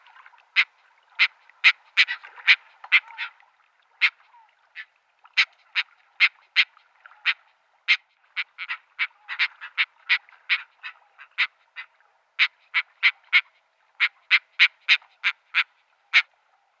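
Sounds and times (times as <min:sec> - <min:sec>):
Caspian tern harsh rasping calls: 0:00.6 - 0:03.4, 0:07.2 - 0:16.3.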